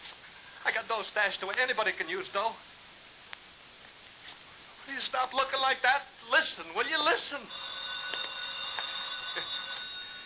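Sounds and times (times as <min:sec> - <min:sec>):
speech: 0:00.6 - 0:02.8, 0:04.9 - 0:08.2
telephone ringing: 0:07.0 - 0:10.2.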